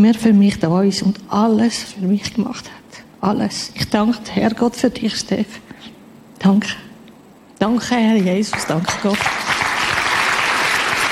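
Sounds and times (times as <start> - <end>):
speech: 0.0 - 5.6, 6.4 - 6.9, 7.6 - 9.4
audience applause: 8.5 - 11.1.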